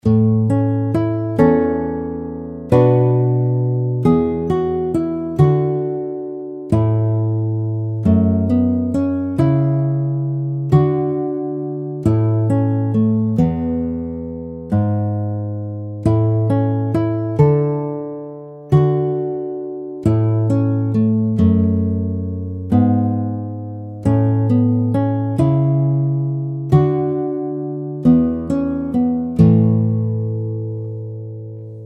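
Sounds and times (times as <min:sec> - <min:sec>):
guitar: 0:00.0 - 0:31.8.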